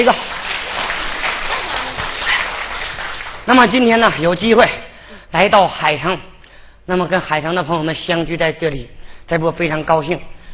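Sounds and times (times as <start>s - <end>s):
speech: 0.0s - 0.3s, 3.5s - 6.3s, 6.9s - 10.4s
audience applause: 0.0s - 4.3s.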